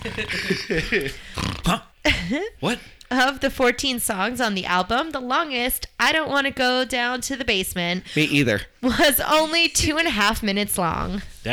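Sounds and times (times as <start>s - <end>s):
person imitating snoring: 0.0s - 0.7s, 1.3s - 1.9s
laughter: 0.0s - 1.4s
speech: 0.2s - 11.5s.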